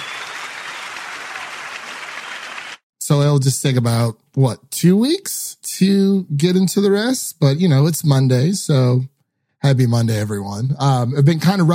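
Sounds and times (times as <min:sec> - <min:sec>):
crowd applause sound effect: 0:00.0 - 0:02.8
speech: 0:03.1 - 0:11.7.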